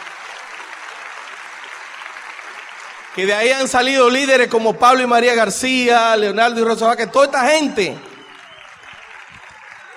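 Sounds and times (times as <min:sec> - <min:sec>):
audience applause: 0:00.0 - 0:04.4, 0:07.7 - 0:09.9
speech: 0:03.2 - 0:08.1.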